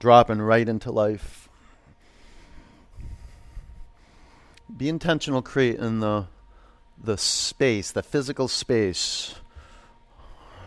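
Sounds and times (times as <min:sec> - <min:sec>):
speech: 0:00.0 - 0:01.5, 0:04.7 - 0:06.4, 0:07.0 - 0:09.4
ujjayi breathing through an open throat with the lips sealed: 0:01.5 - 0:04.6, 0:09.5 - 0:10.6.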